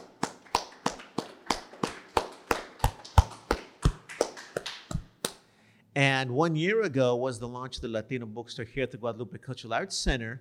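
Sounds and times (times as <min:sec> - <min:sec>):
audience applause: 0:00.0 - 0:05.0
speech: 0:06.0 - 0:10.3.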